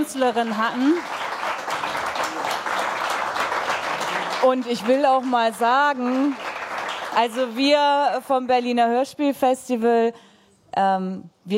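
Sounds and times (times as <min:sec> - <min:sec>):
speech: 0:00.0 - 0:01.2, 0:04.4 - 0:06.4, 0:07.2 - 0:11.5
audience applause: 0:00.0 - 0:07.7.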